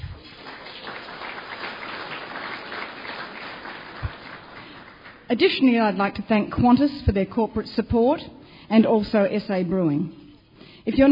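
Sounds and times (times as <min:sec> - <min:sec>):
audience applause: 0:00.0 - 0:05.3
speech: 0:05.3 - 0:10.2, 0:10.8 - 0:11.1.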